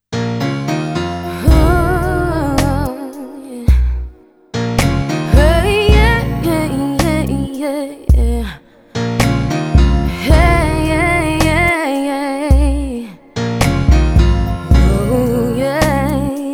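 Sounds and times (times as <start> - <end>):
slow jam love music: 0.3 - 11.8, 13.5 - 16.4.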